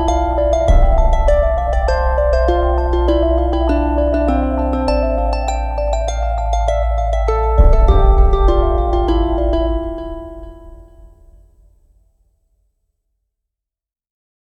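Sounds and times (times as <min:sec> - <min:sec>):
ambient chill music mix: 0:00.0 - 0:11.4.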